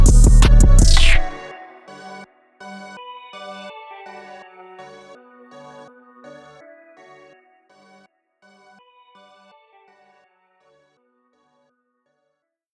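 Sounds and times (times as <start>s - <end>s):
rap bass beat: 0.0s - 1.4s.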